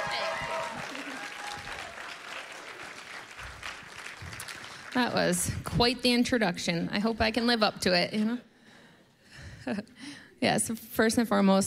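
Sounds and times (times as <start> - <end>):
audience applause at a church service welcoming a guest speaker: 0.0 - 5.4
speech: 5.0 - 8.5, 9.6 - 11.6.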